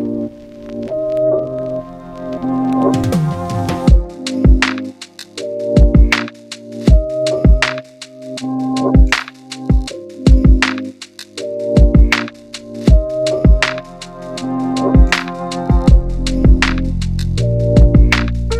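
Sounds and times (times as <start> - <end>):
hip hop music: 0.9 - 18.5.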